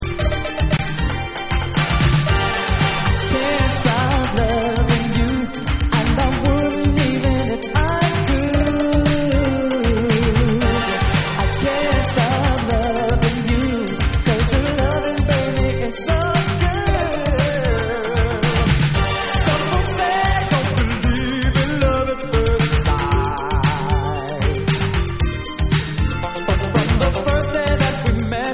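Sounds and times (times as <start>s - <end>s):
vocal music: 0.0s - 28.5s.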